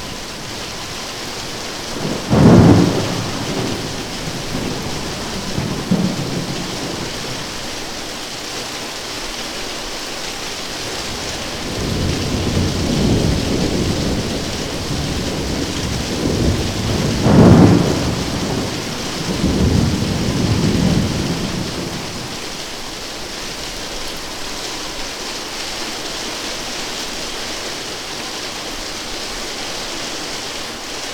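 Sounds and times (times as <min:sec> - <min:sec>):
thunderstorm: 0:00.0 - 0:07.7, 0:10.9 - 0:22.5.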